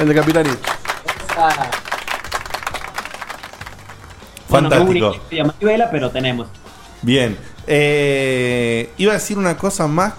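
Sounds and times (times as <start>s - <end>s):
speech: 0.0s - 0.8s, 4.5s - 10.1s
hand claps: 0.0s - 4.5s.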